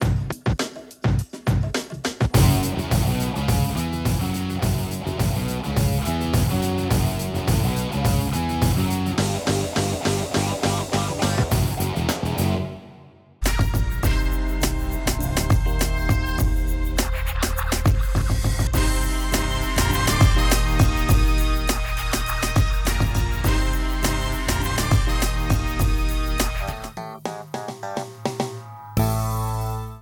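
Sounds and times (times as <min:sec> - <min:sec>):
music: 0:00.0 - 0:30.0.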